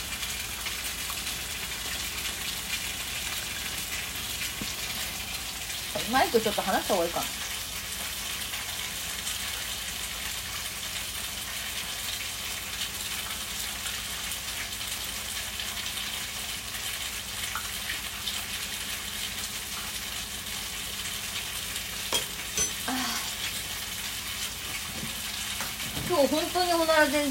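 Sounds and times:
food sizzling while being fried: 0:00.0 - 0:27.2
speech: 0:06.0 - 0:07.4.

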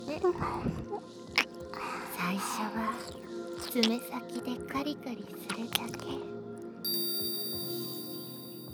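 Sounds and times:
speech: 0:00.2 - 0:01.2, 0:02.3 - 0:06.3
hypnosis bell ringing: 0:06.9 - 0:08.7.

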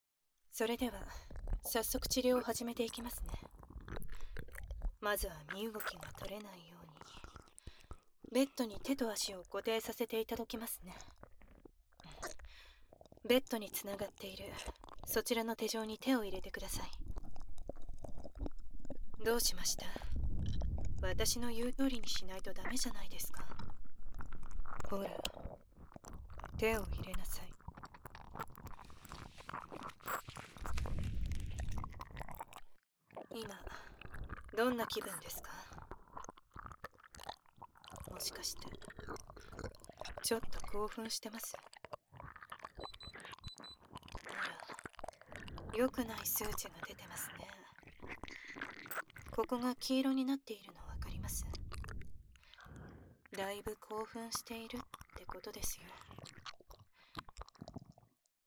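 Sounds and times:
nurse speaking in a low cool voice: 0:00.5 - 0:03.5, 0:05.0 - 0:07.3, 0:08.3 - 0:11.2, 0:12.0 - 0:12.4, 0:13.3 - 0:17.0, 0:19.2 - 0:20.2, 0:21.0 - 0:23.6, 0:24.8 - 0:25.4, 0:26.6 - 0:27.6, 0:33.3 - 0:35.8, 0:38.0 - 0:39.0, 0:40.2 - 0:41.7, 0:44.3 - 0:44.8, 0:45.6 - 0:47.8, 0:49.3 - 0:51.7, 0:53.3 - 0:56.3
ear licking: 0:03.1 - 0:06.3, 0:07.0 - 0:08.2, 0:11.0 - 0:13.2, 0:14.6 - 0:15.1, 0:17.0 - 0:19.2, 0:23.4 - 0:49.5, 0:51.4 - 0:52.9, 0:54.7 - 0:58.1.

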